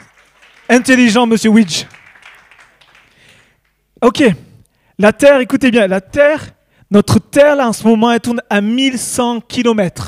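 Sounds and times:
audience applauding: 0:00.0 - 0:03.8
speech: 0:00.7 - 0:02.0, 0:04.0 - 0:04.4, 0:05.0 - 0:10.0.

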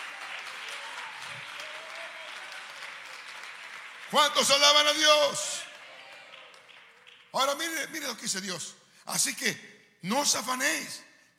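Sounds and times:
audience clapping hands in praise: 0:00.0 - 0:08.2
speech: 0:04.1 - 0:05.6, 0:07.4 - 0:11.3.

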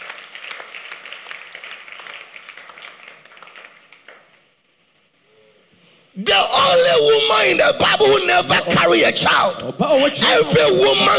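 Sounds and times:
audience clapping: 0:00.0 - 0:04.8
speech: 0:06.2 - 0:11.1.

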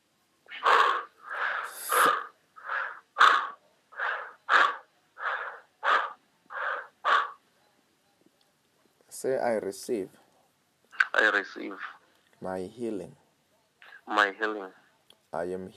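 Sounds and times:
heavy forceful breathing at a healing prayer meeting: 0:00.5 - 0:07.4
speech: 0:09.2 - 0:10.2, 0:11.2 - 0:13.2, 0:14.1 - 0:15.7.

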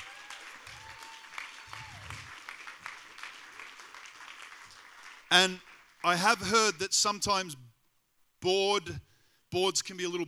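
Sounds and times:
audience applause and cheering: 0:00.0 - 0:06.0
speech: 0:05.3 - 0:07.6, 0:08.4 - 0:10.2.

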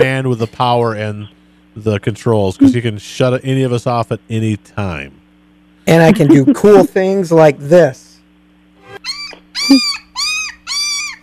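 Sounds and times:
low steady hum: 0:00.0 - 0:10.2
speech: 0:00.1 - 0:05.2, 0:05.8 - 0:08.1, 0:09.0 - 0:10.0
laughter: 0:02.6 - 0:02.8, 0:05.9 - 0:07.0
puppy whining: 0:06.1 - 0:06.9, 0:09.0 - 0:11.2.

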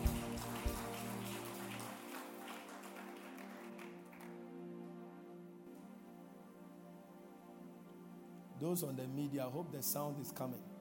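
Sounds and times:
audience clapping: 0:00.0 - 0:05.0
low musical drone: 0:00.0 - 0:10.7
speech: 0:08.6 - 0:10.7.

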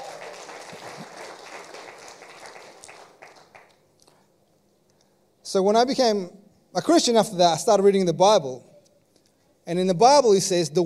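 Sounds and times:
audience clapping: 0:00.0 - 0:04.2
speech: 0:05.5 - 0:08.7, 0:09.6 - 0:10.8.

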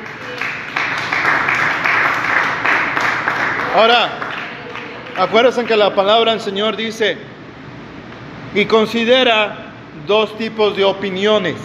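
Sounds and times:
audience applauding: 0:00.0 - 0:06.0
speech: 0:03.8 - 0:04.2, 0:05.2 - 0:07.3, 0:08.5 - 0:11.6.

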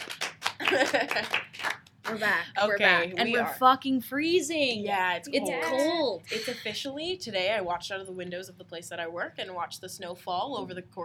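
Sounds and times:
hand claps: 0:00.0 - 0:02.2
speech: 0:00.7 - 0:01.5, 0:02.1 - 0:11.0.

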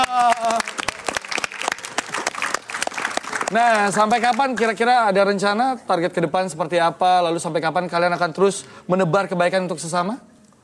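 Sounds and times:
applause: 0:00.0 - 0:04.8
speech: 0:03.5 - 0:10.3.

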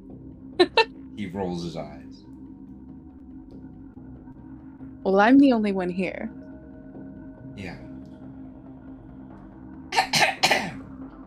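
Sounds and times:
speech: 0:01.2 - 0:02.3, 0:05.0 - 0:06.4, 0:07.6 - 0:07.9
woman clearing her throat: 0:10.0 - 0:10.8.

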